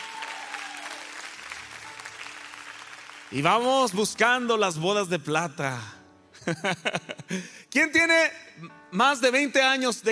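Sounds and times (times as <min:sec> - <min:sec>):
audience applause: 0:00.0 - 0:03.7
speech: 0:03.3 - 0:10.1
laughter: 0:06.4 - 0:07.3.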